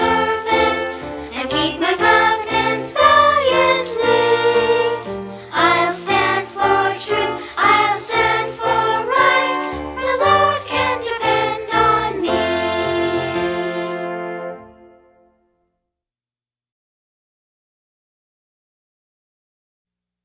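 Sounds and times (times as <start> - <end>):
music: 0.0 - 15.9
speech: 0.7 - 2.6.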